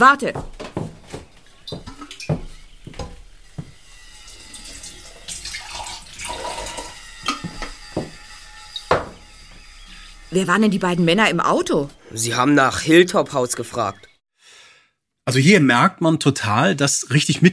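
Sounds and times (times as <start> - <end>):
speech: 0.0 - 0.6, 10.3 - 14.1, 15.3 - 17.5
water pouring into a glass: 4.2 - 7.0.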